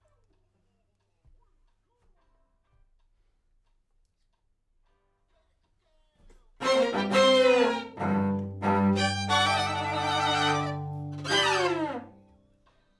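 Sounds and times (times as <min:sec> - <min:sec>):
piano: 0:06.6 - 0:12.2
strings: 0:06.6 - 0:12.3.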